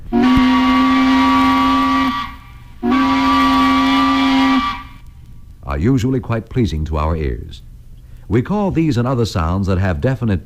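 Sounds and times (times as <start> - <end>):
tugboat whistle blasts: 0.1 - 5.0
speech: 5.8 - 7.7, 8.3 - 10.4.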